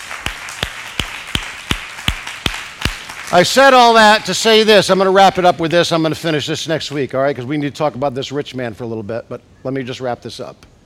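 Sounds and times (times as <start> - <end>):
audience clapping in unison: 0.0 - 4.2
speech: 3.3 - 10.7.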